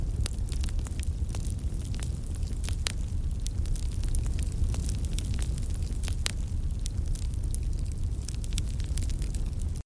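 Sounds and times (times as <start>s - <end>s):
fire burning: 0.0s - 9.8s.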